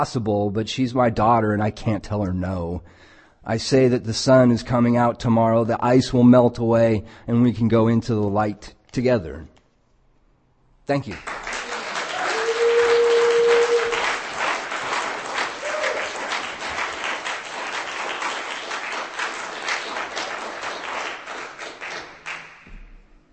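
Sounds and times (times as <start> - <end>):
speech: 0.0 - 9.5, 10.9 - 11.4
audience applause after a reading: 11.0 - 22.7.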